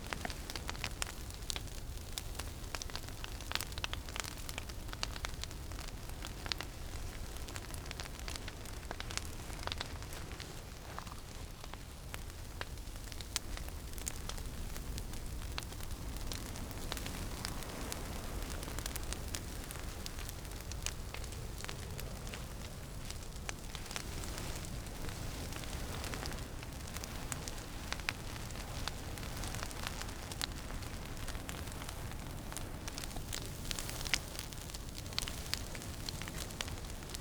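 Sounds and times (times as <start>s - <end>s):
fire burning: 0.0s - 37.1s.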